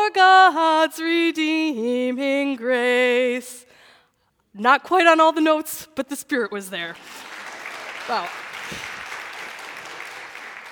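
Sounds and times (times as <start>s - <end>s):
speech: 0.1s - 3.6s, 4.6s - 7.3s, 8.1s - 8.8s
audience applause after singing: 7.0s - 10.6s.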